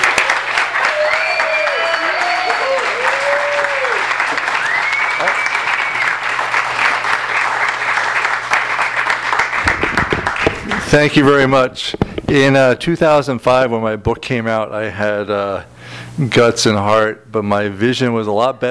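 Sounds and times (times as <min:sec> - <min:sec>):
audience applause welcoming an author at a book reading: 0:00.0 - 0:12.1
speech: 0:10.9 - 0:18.6.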